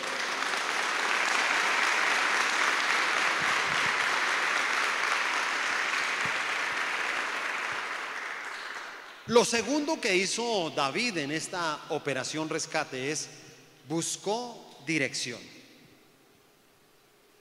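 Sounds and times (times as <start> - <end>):
audience applause: 0.0 - 9.3
speech: 9.3 - 15.6.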